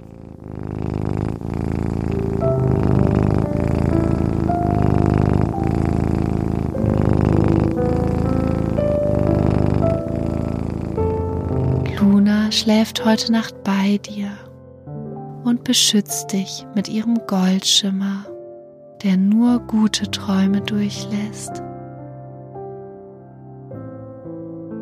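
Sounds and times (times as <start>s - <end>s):
cat purring: 0.0s - 13.6s
speech: 12.6s - 14.4s, 15.6s - 18.2s, 19.0s - 21.6s.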